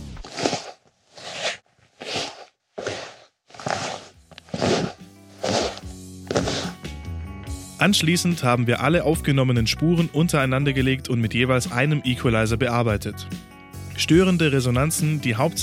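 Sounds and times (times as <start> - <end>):
leather creaking on a couch and stool: 0.0 - 6.8
speech: 7.8 - 15.6.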